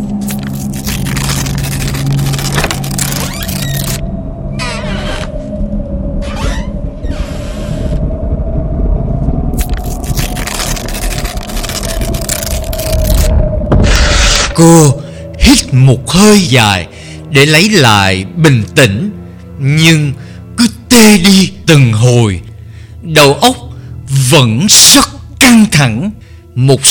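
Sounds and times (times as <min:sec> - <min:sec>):
newspaper stuck on a window rustling: 0:00.2 - 0:04.0, 0:09.6 - 0:13.3
wind blowing against a window: 0:03.5 - 0:15.8
speech: 0:16.2 - 0:20.2, 0:21.0 - 0:22.4, 0:23.0 - 0:23.6, 0:24.3 - 0:26.8.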